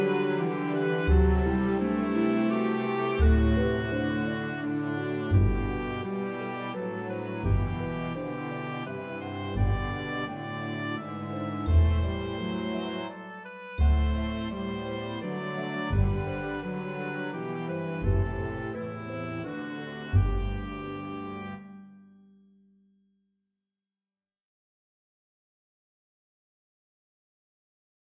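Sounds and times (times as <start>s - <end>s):
oboe melody: 0.0s - 22.0s.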